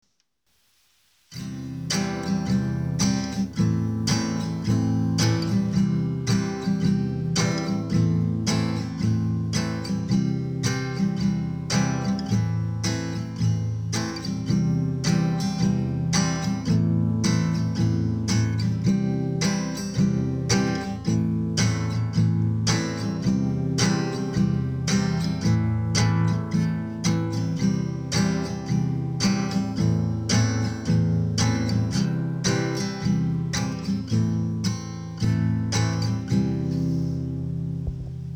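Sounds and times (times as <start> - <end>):
easy xote rhythm on acoustic guitar: 1.0 - 38.3.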